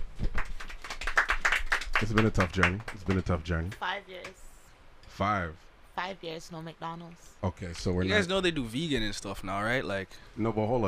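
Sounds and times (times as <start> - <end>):
applause: 0.0 - 4.4
speech: 2.0 - 4.4, 5.2 - 10.8.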